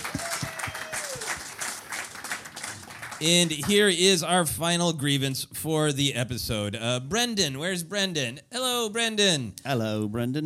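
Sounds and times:
audience applause: 0.0s - 3.8s
speech: 3.2s - 10.4s.

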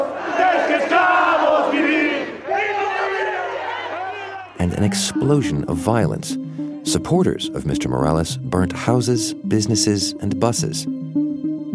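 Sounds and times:
large crowd of protesters cheering and shouting: 0.0s - 5.3s
speech: 4.6s - 11.0s.

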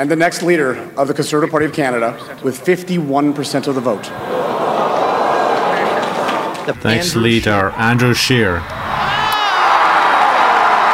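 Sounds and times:
speech: 0.0s - 4.5s, 6.7s - 8.8s
laughter: 1.2s - 9.7s
crowd cheering and whooping at Conservative Party of Canada leadership result: 4.1s - 6.8s, 8.5s - 10.9s.

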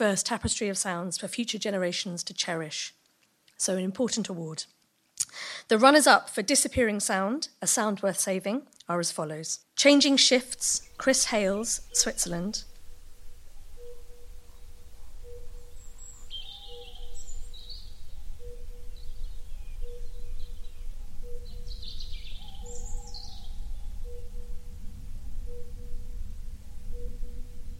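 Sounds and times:
speech: 0.0s - 3.0s, 3.6s - 12.7s
curlew bubbling song: 10.4s - 27.7s.

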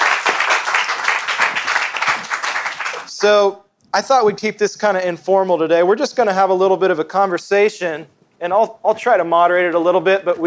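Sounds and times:
audience applause welcoming a guest: 0.0s - 3.1s
speech: 3.2s - 10.4s.

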